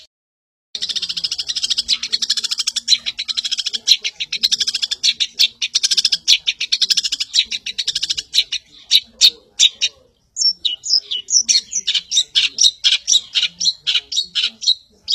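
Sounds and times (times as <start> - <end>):
long-tailed shrike buzzy chattering song: 0.8 - 15.1.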